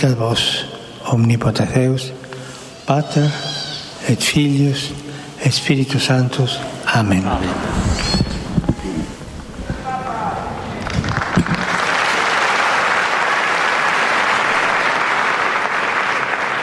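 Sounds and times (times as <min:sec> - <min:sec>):
speech: 0:00.0 - 0:02.2, 0:02.9 - 0:08.2
pilgrims' storm of applause: 0:09.7 - 0:16.6.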